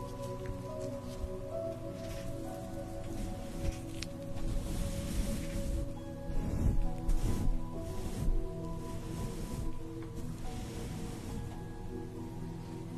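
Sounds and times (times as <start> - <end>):
soft massage rubbing and brushing: 0.0 - 12.9
facial treatment steam hiss: 4.4 - 12.9.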